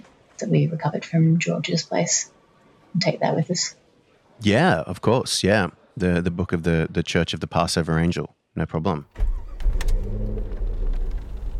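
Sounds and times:
speech: 0:00.4 - 0:03.8, 0:04.4 - 0:09.4
car engine rumble as background effect for a driving scene: 0:09.2 - 0:11.5.

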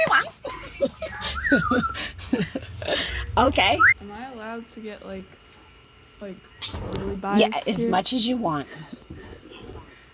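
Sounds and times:
laughter: 0:00.0 - 0:03.3
pet bird chirping: 0:01.0 - 0:02.7
speech: 0:03.4 - 0:05.4, 0:06.2 - 0:09.5.

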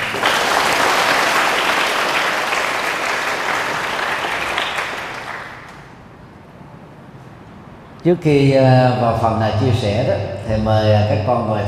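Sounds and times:
big round of applause: 0:00.0 - 0:05.9
speech: 0:08.0 - 0:11.6.

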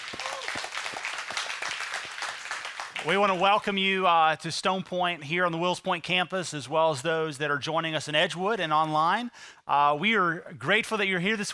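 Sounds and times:
church congregation applauding during a morning service: 0:00.0 - 0:03.5
speech: 0:03.0 - 0:11.5.

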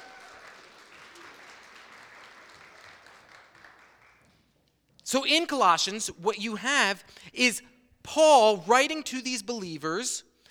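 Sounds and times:
audience applause: 0:00.0 - 0:04.4
speech: 0:05.1 - 0:10.3.

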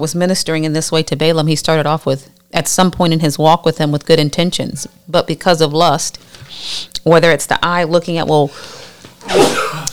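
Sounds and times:
speech: 0:00.0 - 0:09.8
sneeze: 0:09.2 - 0:09.9.

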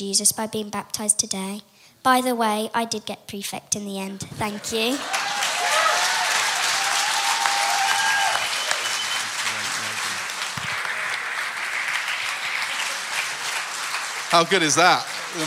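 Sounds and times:
speech: 0:00.0 - 0:05.2, 0:14.3 - 0:15.4
audience clapping: 0:04.5 - 0:15.4
faint cheers and whoops: 0:05.0 - 0:09.2.

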